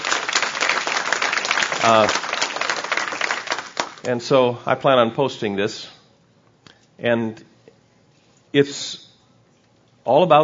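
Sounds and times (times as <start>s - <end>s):
audience applause: 0.0s - 4.1s
speech: 1.8s - 2.2s, 4.0s - 6.0s, 7.0s - 7.5s, 8.5s - 9.0s, 10.1s - 10.4s.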